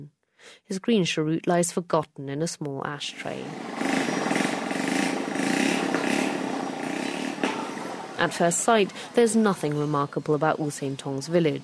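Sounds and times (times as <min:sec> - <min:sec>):
speech: 0:00.0 - 0:03.8, 0:08.2 - 0:11.6
motorbikes zooming along a village road: 0:03.1 - 0:10.0.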